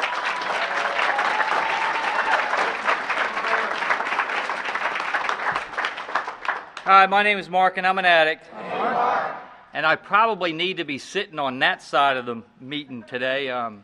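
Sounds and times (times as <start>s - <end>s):
audience round of applause: 0.0s - 6.8s
speech: 6.9s - 8.6s, 9.8s - 13.8s.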